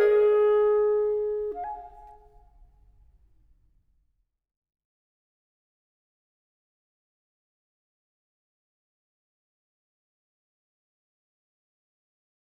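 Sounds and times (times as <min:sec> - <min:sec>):
clarinet: 0:00.0 - 0:02.4.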